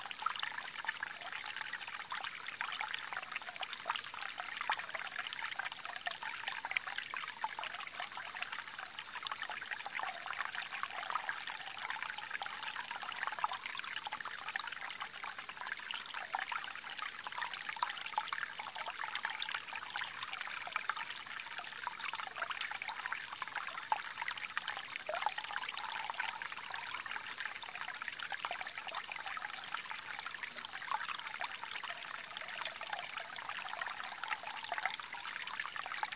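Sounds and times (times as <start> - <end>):
forest stream: 0.0 - 36.1.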